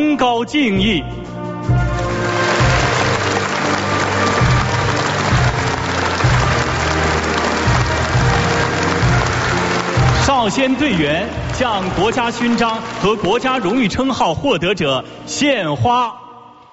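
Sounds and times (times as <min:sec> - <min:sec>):
speech: 0:00.1 - 0:01.8, 0:10.3 - 0:16.2
crowd applause: 0:02.0 - 0:13.9.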